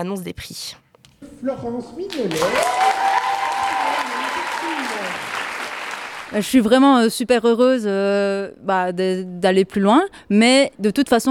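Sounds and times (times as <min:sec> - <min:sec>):
speech: 0:00.0 - 0:02.9, 0:06.3 - 0:11.2
audience applause for award winners: 0:02.0 - 0:06.4.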